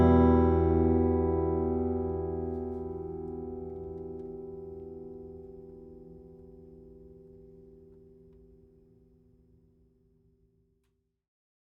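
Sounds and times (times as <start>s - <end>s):
jumbo flattop steel-string guitar of wenge and western red cedar: 0.0s - 6.6s.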